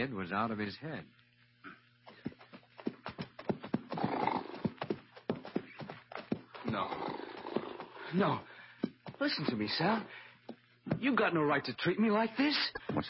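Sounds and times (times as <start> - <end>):
speech: 0.0 - 1.2, 6.7 - 7.2, 8.1 - 8.5, 9.2 - 10.2, 11.0 - 13.0
tired horse hooves clopping to a halt: 2.0 - 11.3
tired horse snorting: 2.1 - 8.3.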